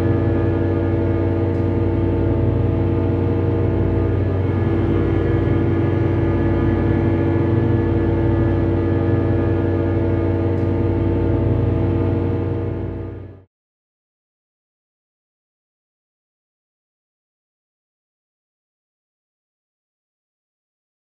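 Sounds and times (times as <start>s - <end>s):
dark texture drone: 0.0s - 13.5s.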